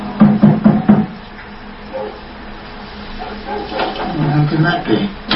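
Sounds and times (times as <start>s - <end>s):
knocking on a door: 0.2s - 1.2s
speech: 4.6s - 5.2s.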